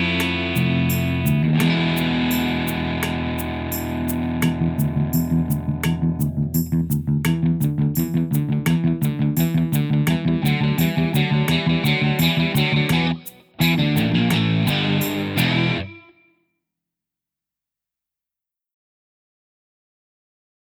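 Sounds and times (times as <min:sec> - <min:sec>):
backing drums: 0:00.0 - 0:15.9.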